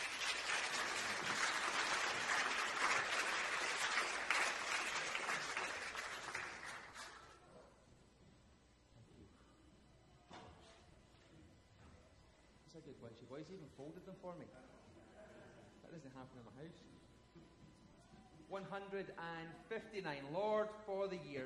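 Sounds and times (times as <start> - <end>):
crowd clapping: 0.0 - 7.4
speech: 12.8 - 14.7, 15.9 - 17.5, 18.5 - 21.4.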